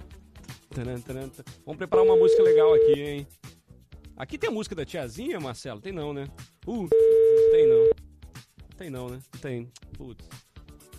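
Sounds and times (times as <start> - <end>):
speech: 0.8 - 3.5, 4.2 - 8.0, 8.8 - 10.4
telephone busy tone after a radio phone-in caller hangs up: 2.0 - 3.0, 6.9 - 8.0.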